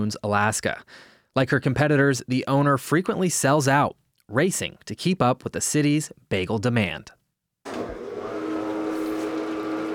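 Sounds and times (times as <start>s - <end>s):
speech: 0.0s - 7.2s
industrial-sized dough machine rolling bagel dough in an Anchorage bagel kitchen: 7.7s - 9.9s.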